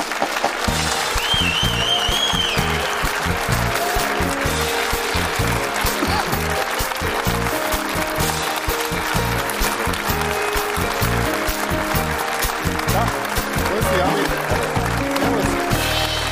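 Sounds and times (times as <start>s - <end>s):
studio audience applause welcoming guest: 0.0s - 16.3s
faint audience whistles: 1.1s - 3.1s.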